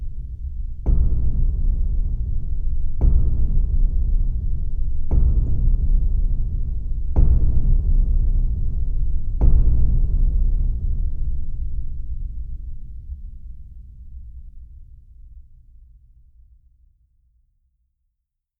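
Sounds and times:
heartbeat drum: 0.0s - 13.5s.

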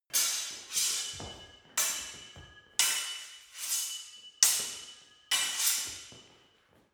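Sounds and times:
sword hitting sword: 0.1s - 6.4s.

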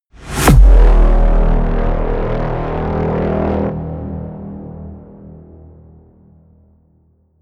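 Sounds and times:
metal explosion blasts and hits: 0.2s - 4.2s.

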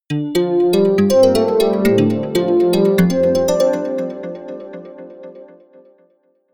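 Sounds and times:
ringtone melody: 0.1s - 4.6s.

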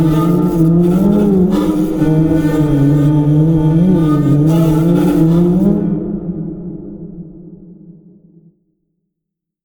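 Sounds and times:
erratic high didgeridoo drone: 0.0s - 6.6s.

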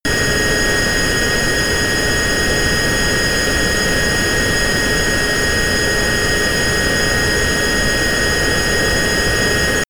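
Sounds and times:
Bombardier private plane turbine at full power: 0.1s - 9.8s.

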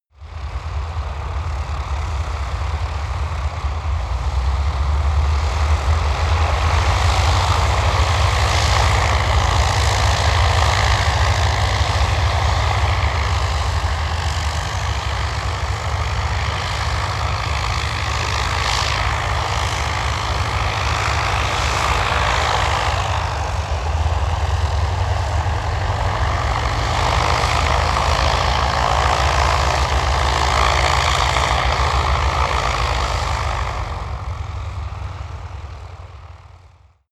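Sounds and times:
Ju 52 propeller plane maneuvering: 0.1s - 37.0s.

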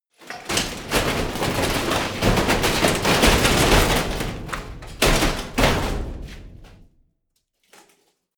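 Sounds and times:
medium metal crash: 0.5s - 6.8s.

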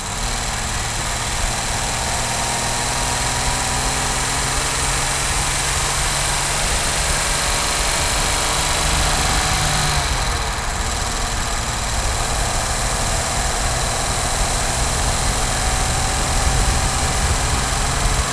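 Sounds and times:
Jaguar E-Type car engine driving: 0.0s - 18.3s.

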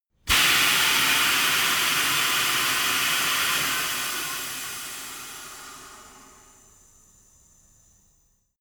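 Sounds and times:
tire changing machine hydraulics: 0.3s - 7.5s.

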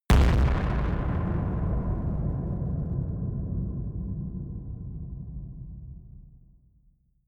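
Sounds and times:
distorted explosions: 0.1s - 5.2s.

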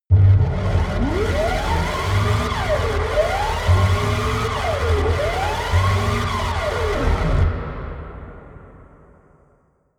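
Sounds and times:
siren: 0.1s - 7.5s.

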